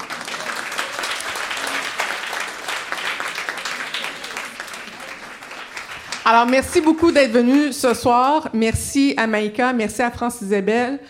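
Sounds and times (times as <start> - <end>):
crowd applauding: 0.0 - 8.4
speech: 6.3 - 11.0.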